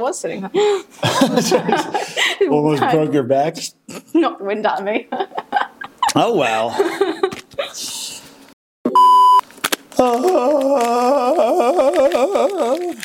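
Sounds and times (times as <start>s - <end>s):
speech: 0.0s - 5.3s, 6.2s - 7.1s
laughter: 1.0s - 3.1s, 5.1s - 7.9s, 10.3s - 13.0s
short electronic beep: 8.9s - 9.4s.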